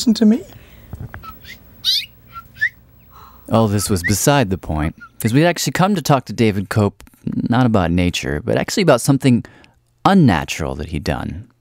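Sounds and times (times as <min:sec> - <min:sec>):
speech: 0:00.0 - 0:00.6, 0:03.5 - 0:11.5
mother bird chirping near her nest: 0:01.2 - 0:05.4.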